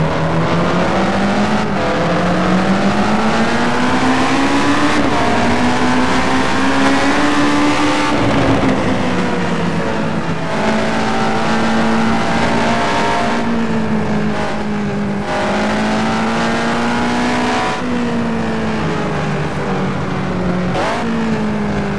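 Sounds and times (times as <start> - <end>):
Ferrari 360 engine: 0.0 - 21.9.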